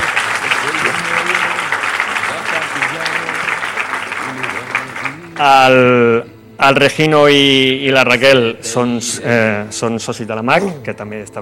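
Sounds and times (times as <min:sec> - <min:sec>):
audience applause: 0:00.0 - 0:05.7
speech: 0:05.4 - 0:11.3.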